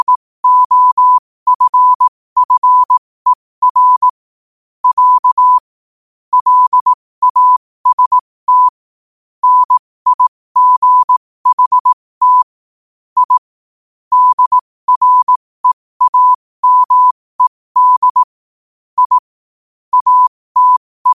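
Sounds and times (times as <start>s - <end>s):
morse code at 5 wpm: 0.0s - 4.2s, 4.8s - 5.7s, 6.3s - 8.8s, 9.4s - 12.5s, 13.2s - 13.5s, 14.1s - 18.3s, 19.0s - 19.3s, 19.9s - 21.1s.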